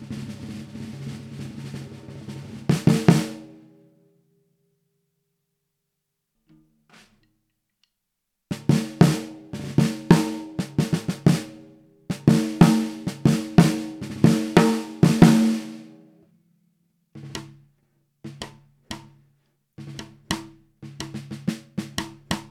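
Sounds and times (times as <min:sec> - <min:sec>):
Tama LMB1465 drum tuned low: 0:00.0 - 0:03.6, 0:08.5 - 0:15.9, 0:17.2 - 0:17.7, 0:18.3 - 0:22.4.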